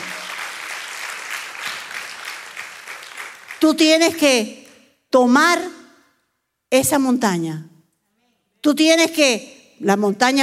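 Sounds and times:
loud applause: 0.0s - 3.6s
speech: 3.6s - 5.8s, 6.7s - 7.7s, 8.6s - 10.4s.

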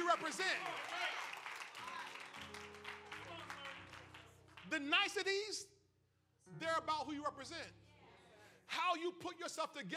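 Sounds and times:
half-hearted audience clapping: 0.0s - 5.2s
speech: 4.8s - 5.7s, 6.5s - 7.8s, 8.7s - 9.9s.

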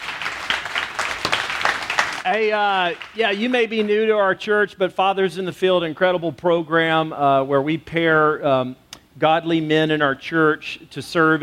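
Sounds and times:
audience applause: 0.0s - 3.9s
speech: 2.2s - 11.4s.

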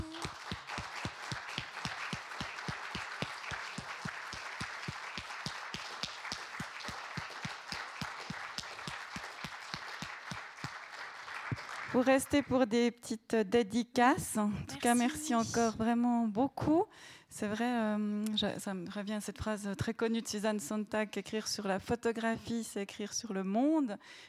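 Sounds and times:
audience applause: 0.0s - 12.0s
speech: 12.0s - 24.2s.

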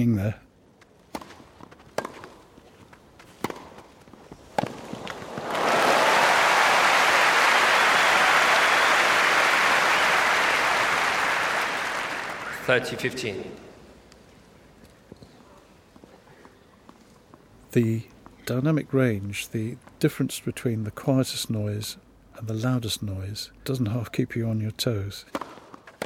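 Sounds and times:
speech: 0.0s - 0.4s, 12.7s - 13.6s, 17.8s - 25.4s
sports crowd cheering and applauding recorded in surround: 5.2s - 13.1s.

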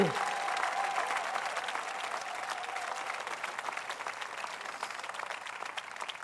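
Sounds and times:
audience applause: 0.0s - 6.2s.

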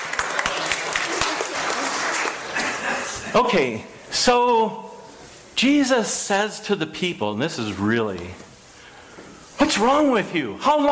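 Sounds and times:
audience applause: 0.0s - 3.0s
speech: 3.3s - 4.9s, 5.6s - 8.5s, 9.7s - 10.8s.

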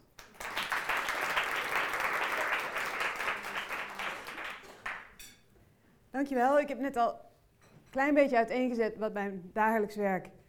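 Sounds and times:
audience applause: 0.0s - 5.2s
speech: 6.2s - 7.3s, 7.9s - 10.4s.

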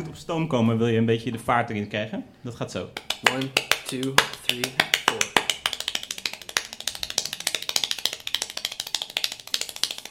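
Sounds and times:
speech: 0.1s - 5.0s
extremely fast world-record hand clapping: 3.0s - 10.0s.

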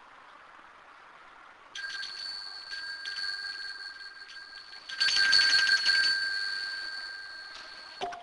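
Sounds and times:
meditation bell ringing: 1.8s - 8.1s.

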